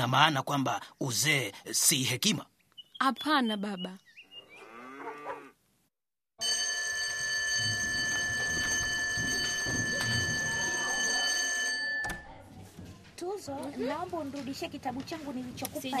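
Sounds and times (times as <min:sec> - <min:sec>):
speech: 0:00.0 - 0:04.1, 0:13.2 - 0:15.9
electric bell ringing: 0:06.4 - 0:12.2.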